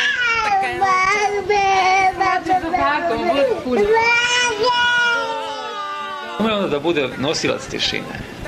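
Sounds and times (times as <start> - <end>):
20-month-old child whimpering and crying: 0.0 - 6.4
speech: 0.6 - 1.6, 2.6 - 5.0, 6.4 - 8.4.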